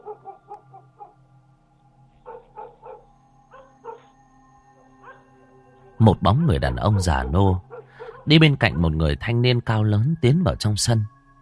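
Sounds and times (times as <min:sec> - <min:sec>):
dogs barking in the distance in a village at night: 0:00.0 - 0:01.3, 0:02.1 - 0:04.2, 0:04.8 - 0:05.4, 0:06.3 - 0:08.7
speech: 0:06.0 - 0:11.3.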